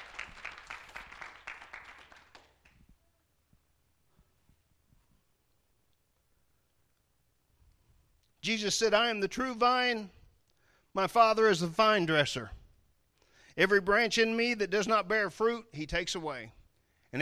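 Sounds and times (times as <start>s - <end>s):
audience clapping hands in praise: 0.0s - 3.0s
speech: 8.4s - 10.2s, 11.0s - 12.6s, 13.6s - 17.2s.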